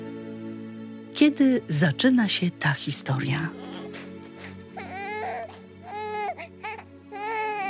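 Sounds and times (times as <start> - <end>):
speech: 1.2 - 3.8
newborn baby crying: 3.4 - 7.6.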